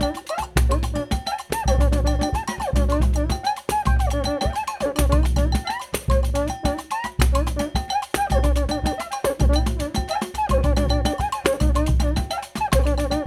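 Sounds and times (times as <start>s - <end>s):
Rio batucada drumming: 0.0s - 13.2s.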